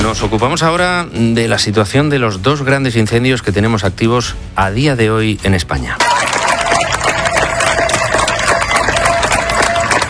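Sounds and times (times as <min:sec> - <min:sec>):
speech: 0:00.2 - 0:06.3
neighbours of Niebla in Huelva applauding firefighting crews: 0:06.0 - 0:10.0.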